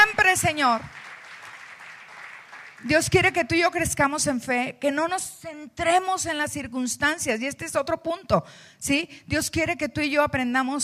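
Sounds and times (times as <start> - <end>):
audience applause: 0.0 - 2.9
speech: 0.4 - 1.0, 2.8 - 10.8.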